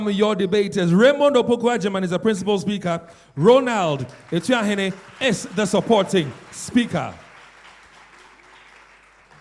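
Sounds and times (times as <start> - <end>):
speech: 0.0 - 7.2
audience clapping at a debate in Ghana as debaters join the stage: 3.6 - 9.4.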